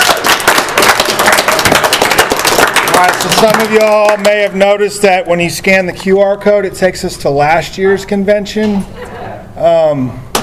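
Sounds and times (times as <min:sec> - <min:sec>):
audience applause: 0:00.0 - 0:04.5
speech: 0:03.0 - 0:10.2
laughter: 0:08.8 - 0:09.6.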